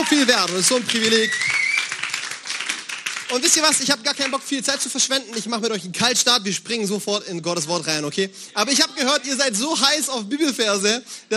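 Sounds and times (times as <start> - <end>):
speech: 0.0 - 1.7, 3.3 - 11.3
audience applauding: 0.0 - 5.5.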